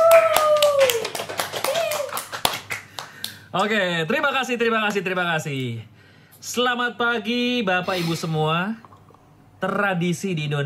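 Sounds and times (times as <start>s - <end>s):
scattered clapping welcoming a contestant: 0.0s - 5.0s
speech: 3.6s - 8.9s, 9.6s - 10.6s.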